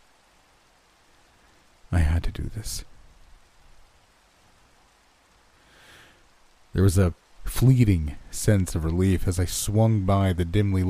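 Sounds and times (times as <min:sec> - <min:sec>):
rain falling: 0:00.0 - 0:10.8
speech: 0:01.9 - 0:02.9, 0:06.8 - 0:10.8.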